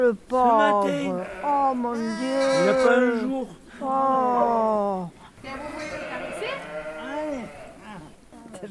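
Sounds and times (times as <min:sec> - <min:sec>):
speech: 0:00.0 - 0:06.7
newborn lamb bleating for its mother: 0:00.6 - 0:03.3, 0:05.4 - 0:08.1.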